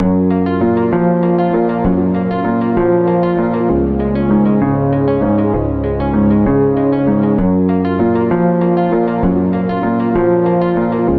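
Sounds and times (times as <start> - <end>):
looped guitar melodies: 0.0 - 11.1.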